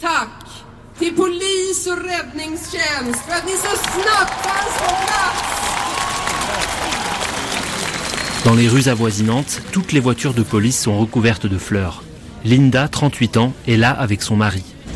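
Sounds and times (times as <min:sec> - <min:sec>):
speech: 0:01.0 - 0:05.5, 0:08.4 - 0:14.8
crowd giving an ovation: 0:02.5 - 0:10.6.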